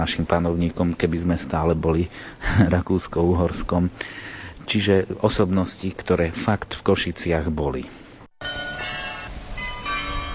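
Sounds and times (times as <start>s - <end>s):
speech: 0.0s - 8.0s
carillon playing an hourly melody in Košice: 8.4s - 10.3s.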